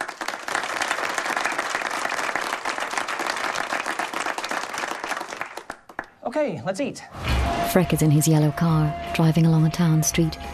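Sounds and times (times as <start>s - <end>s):
room of people applauding: 0.0s - 6.3s
speech: 6.3s - 10.5s.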